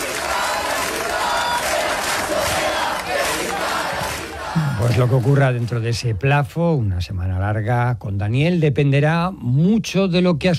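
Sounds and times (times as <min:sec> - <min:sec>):
protesters chanting slogans: 0:00.0 - 0:05.0
speech: 0:04.9 - 0:10.5.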